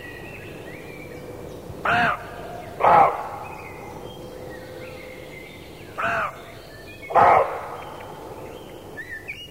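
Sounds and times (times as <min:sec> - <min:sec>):
background hiss: 0:00.0 - 0:09.4
speech: 0:01.8 - 0:02.2
roe deer barking: 0:01.9 - 0:03.7, 0:07.1 - 0:08.0.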